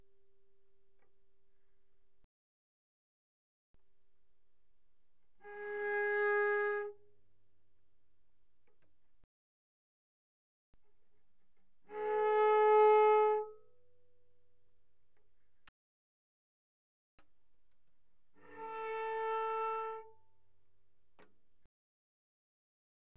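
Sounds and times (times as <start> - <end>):
bowed cello playing pianissimo on the D string: 5.2 - 7.5, 11.2 - 15.5, 18.2 - 20.6.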